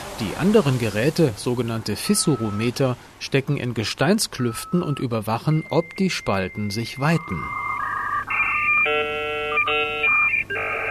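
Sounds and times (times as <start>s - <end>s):
speech: 0.2s - 7.6s
dial-up telephone modem dialing and handshaking: 4.4s - 10.9s.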